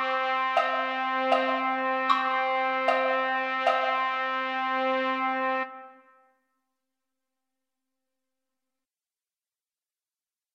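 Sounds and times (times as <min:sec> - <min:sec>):
trumpet: 0:00.0 - 0:06.4.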